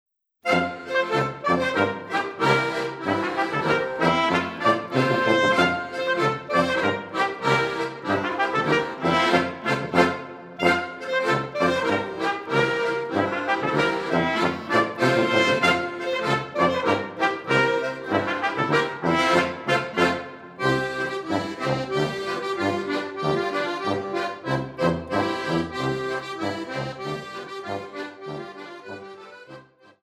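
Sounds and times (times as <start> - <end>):
schottische dance music: 0.5 - 29.1.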